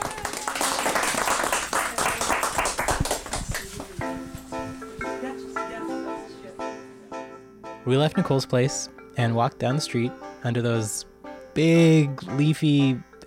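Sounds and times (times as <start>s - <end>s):
applause: 0.0s - 4.0s
speech: 7.9s - 13.2s.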